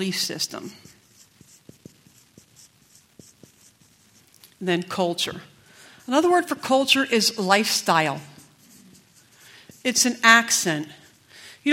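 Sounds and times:
speech: 0.0 - 1.0, 4.6 - 5.5, 6.1 - 8.3, 9.8 - 11.0
pen scratches writing a word in shorthand: 0.1 - 4.4, 7.7 - 11.2.

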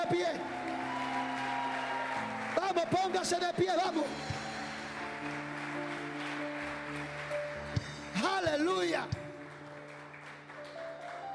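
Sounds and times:
audience applauding: 0.0 - 11.3
speech: 2.8 - 4.4.

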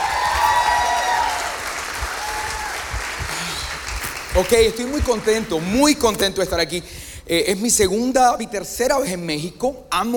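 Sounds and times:
audience applause: 0.0 - 5.7
speech: 4.4 - 10.1.

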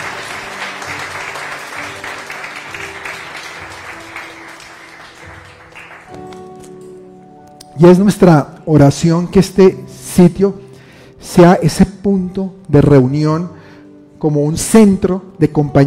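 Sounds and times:
audience applause: 0.0 - 6.3
speech: 7.8 - 10.6, 11.2 - 13.6, 14.2 - 15.8.

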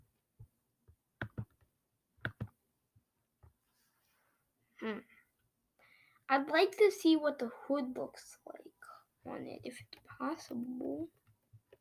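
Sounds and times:
computer mouse clicking: 1.2 - 1.6, 2.2 - 2.5
speech: 4.8 - 5.2, 6.3 - 8.6, 9.3 - 11.2.

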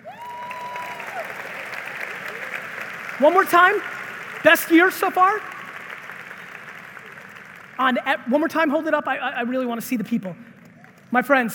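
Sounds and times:
audience applause: 0.0 - 8.4
speech: 3.2 - 5.5, 7.8 - 10.5, 11.1 - 11.5.

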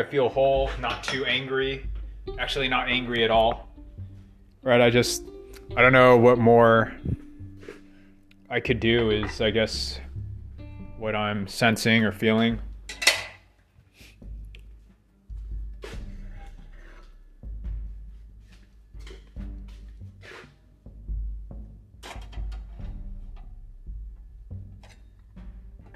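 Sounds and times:
speech: 0.0 - 3.7, 4.6 - 7.2, 8.5 - 10.0, 11.0 - 13.0
dishes, plates and utensils clinking and clattering while being washed: 12.9 - 13.4.

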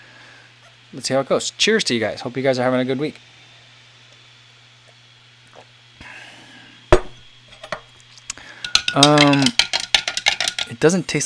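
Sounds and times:
speech: 0.9 - 3.3, 9.0 - 9.2, 10.8 - 11.2
spoon clinking against cup stirring a chunky drink: 8.6 - 10.7.

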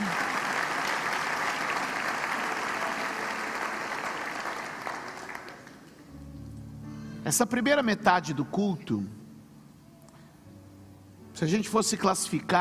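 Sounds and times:
audience applause: 0.0 - 6.1
speech: 7.3 - 9.2, 11.4 - 12.6.

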